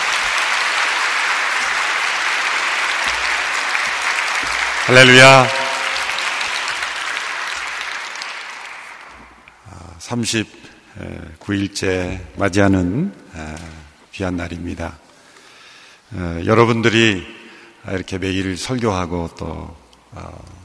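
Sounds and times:
audience applause: 0.0 - 9.5
speech: 4.9 - 5.6, 10.1 - 15.0, 16.1 - 20.6.

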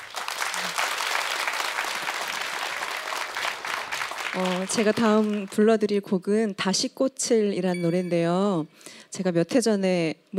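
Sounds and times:
audience applause: 0.0 - 5.5
speech: 4.4 - 10.3.

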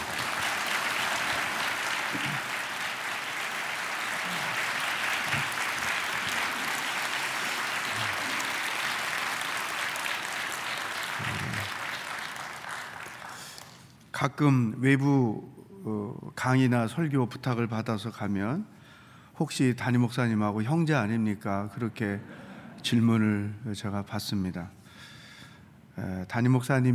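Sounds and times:
audience applause: 0.0 - 13.8
speech: 14.2 - 18.8, 19.4 - 24.8, 26.0 - 26.9.

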